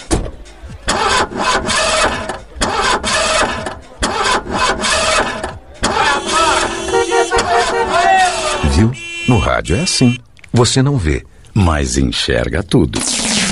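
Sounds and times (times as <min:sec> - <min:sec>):
nearly 300 horsepower sports car engine starting and roaring: 0:00.0 - 0:09.2
speech: 0:09.4 - 0:13.4.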